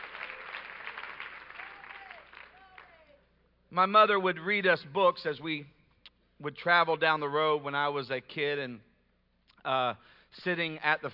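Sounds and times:
seated audience clapping hands: 0.0s - 3.2s
speech: 3.7s - 5.8s, 6.4s - 8.9s, 9.6s - 11.1s.

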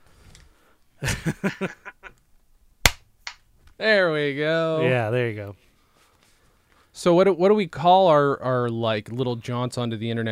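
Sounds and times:
speech: 1.0s - 1.9s, 3.8s - 5.6s, 7.0s - 10.3s
chuckling: 1.0s - 2.2s
hand clap: 2.9s - 3.4s.

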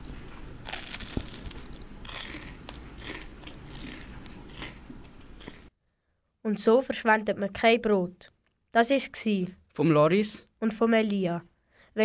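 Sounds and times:
crunchy churros being bitten and chewed: 0.0s - 5.7s
speech: 6.5s - 12.0s.

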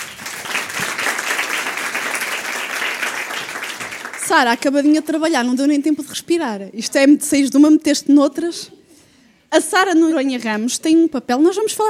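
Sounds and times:
audience applause: 0.0s - 4.4s
speech: 4.3s - 8.8s, 9.5s - 11.8s.

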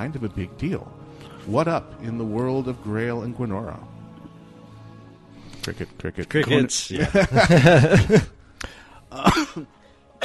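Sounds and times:
speech: 0.0s - 4.0s, 5.6s - 8.4s, 9.4s - 9.8s
laughter: 6.5s - 8.4s
person coughing: 9.1s - 10.2s.

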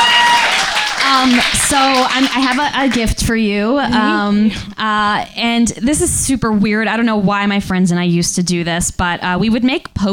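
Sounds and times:
audience clapping: 0.0s - 3.3s
speech: 1.2s - 10.1s.

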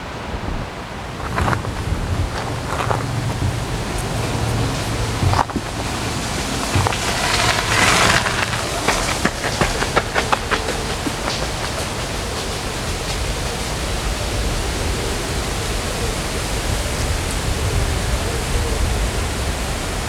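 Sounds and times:
wind rushing along the river in Odense: 0.1s - 20.0s
low rumble: 0.3s - 9.1s
scuffs and taps: 1.1s - 13.7s.

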